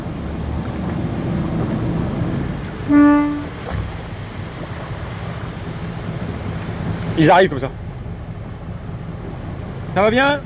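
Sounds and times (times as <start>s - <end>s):
boat engine rumble: 0.0s - 10.4s
water: 0.0s - 10.4s
wind: 0.0s - 10.4s
short boat horn blast: 2.7s - 4.1s
speech: 7.2s - 7.8s, 10.0s - 10.4s.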